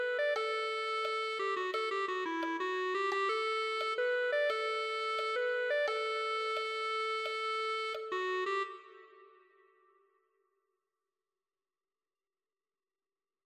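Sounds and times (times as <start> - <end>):
clarinet: 0.0 - 10.0.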